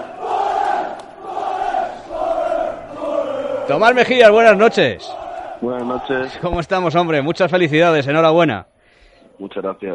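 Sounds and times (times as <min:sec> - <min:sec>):
football fans chanting: 0:00.0 - 0:07.2
speech: 0:03.7 - 0:08.7, 0:09.4 - 0:09.9.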